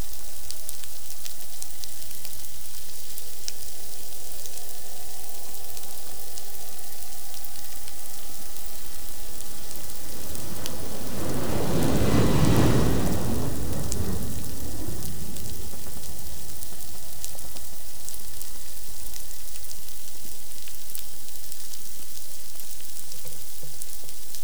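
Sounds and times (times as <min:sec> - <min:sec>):
plane: 0:03.5 - 0:19.2
boat: 0:03.8 - 0:19.1.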